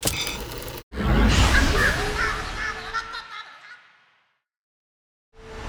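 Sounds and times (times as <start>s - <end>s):
lab door opening: 0.0s - 0.8s
laughter: 1.8s - 3.8s.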